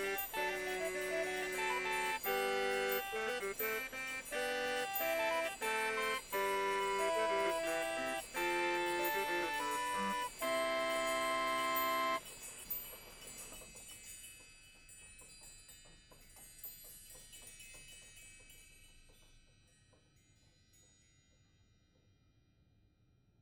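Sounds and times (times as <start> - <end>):
claviorganum playing: 0.0 - 12.2.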